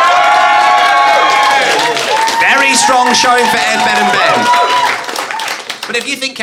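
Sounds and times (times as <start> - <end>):
audience applause: 0.0 - 6.4
speech: 3.1 - 4.6, 5.9 - 6.4.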